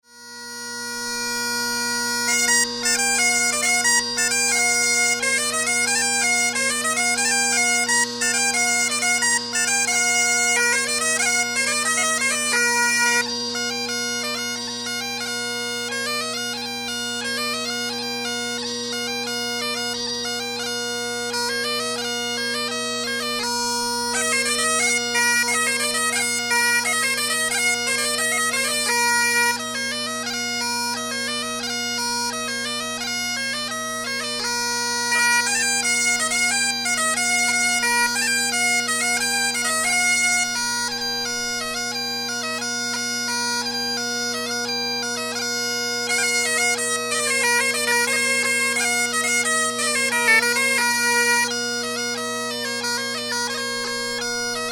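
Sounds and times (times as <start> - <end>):
bagpipe: 0.0 - 54.6
bombarde: 0.6 - 54.6.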